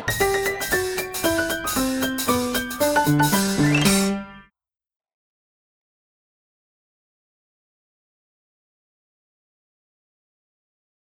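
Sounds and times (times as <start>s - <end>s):
live hammered dulcimer jingle: 0.1s - 4.4s.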